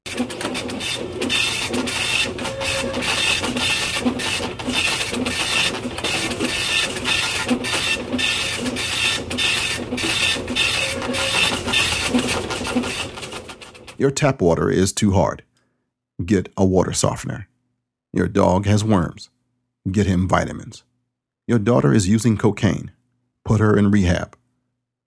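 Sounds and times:
diagnostic machine printing out results: 0.0 - 14.0
speech: 0.2 - 1.9, 14.0 - 15.5, 16.2 - 17.5, 18.1 - 20.9, 21.5 - 24.4.

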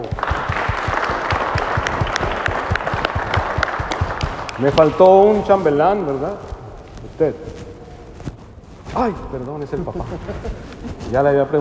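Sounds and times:
audience applause: 0.0 - 5.3
speech: 4.6 - 6.5, 7.2 - 7.6, 9.0 - 11.5.

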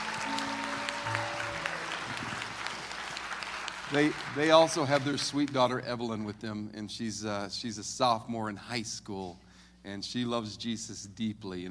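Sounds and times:
audience applause: 0.0 - 5.6
speech: 3.9 - 11.6.

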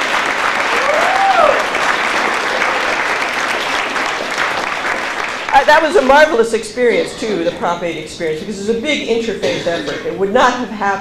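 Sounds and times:
audience applause: 0.0 - 6.4
speech: 5.7 - 10.9.

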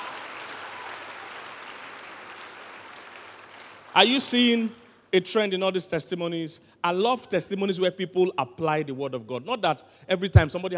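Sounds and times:
audience clapping: 0.0 - 4.4
speech: 4.0 - 10.7.

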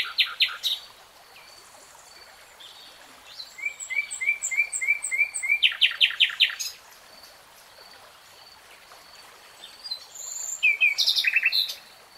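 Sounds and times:
nightingale singing: 0.0 - 0.8, 3.4 - 6.8, 9.8 - 11.9
faint steady hiss: 0.0 - 12.1.

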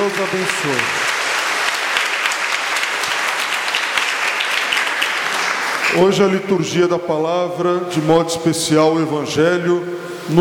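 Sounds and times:
audience applause: 0.0 - 6.4
speech: 0.1 - 1.0, 6.0 - 10.3.

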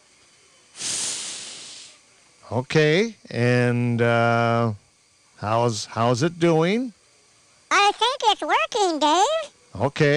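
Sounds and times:
blowing into a paper bag: 0.8 - 2.0
speech: 2.5 - 4.8, 5.4 - 7.0, 7.8 - 10.1.

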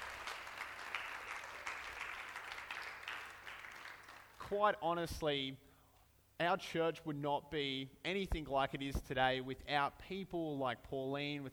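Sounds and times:
audience applause: 0.0 - 4.4
speech: 4.5 - 5.6, 6.4 - 11.5.

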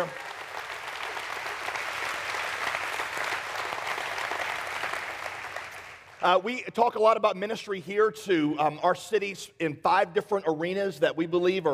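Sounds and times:
speech: 0.0 - 0.2, 6.2 - 11.7
audience applause: 0.0 - 6.2.

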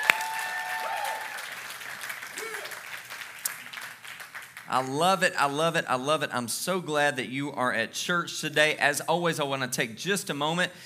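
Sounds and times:
church congregation applauding for fathers on Father's Day: 0.0 - 4.7
speech: 4.7 - 10.8.

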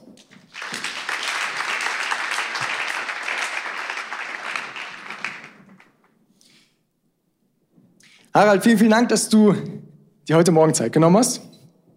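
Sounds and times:
big round of applause: 0.2 - 6.1
speech: 8.4 - 11.5.

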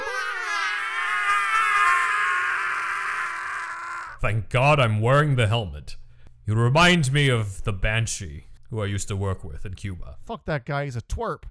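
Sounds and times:
person shrieking: 0.0 - 4.2
speech: 4.2 - 11.5.

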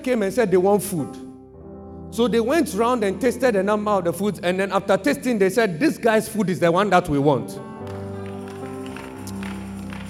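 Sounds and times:
speech: 0.0 - 1.3, 2.1 - 7.7
uncertain hand clapping from audience: 7.8 - 10.0.

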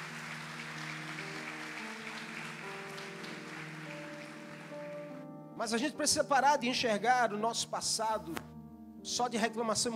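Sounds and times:
audience applause: 0.0 - 5.2
speech: 5.6 - 9.9.

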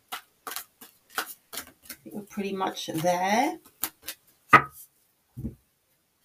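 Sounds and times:
tarot deck being shuffled and cut: 0.0 - 2.1, 2.9 - 4.8
sharp taps of the tarot deck: 0.1 - 2.0, 3.0 - 4.8
speech: 2.0 - 3.7.

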